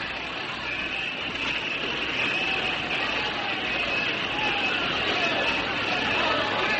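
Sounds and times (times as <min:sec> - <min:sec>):
crowd of people at a station: 0:00.0 - 0:06.7.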